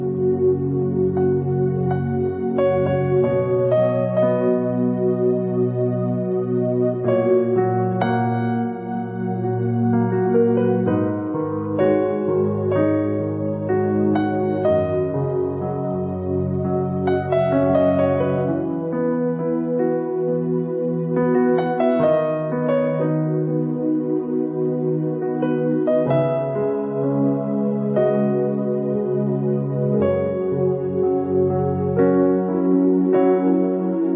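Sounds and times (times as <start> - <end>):
instrumental soaking piano music: 0.0 - 34.1.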